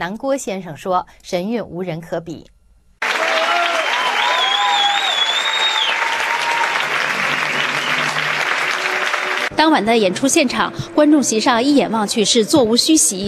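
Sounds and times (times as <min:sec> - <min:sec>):
speech: 0:00.0 - 0:02.6, 0:09.6 - 0:13.2
theater audience applause: 0:03.0 - 0:09.5.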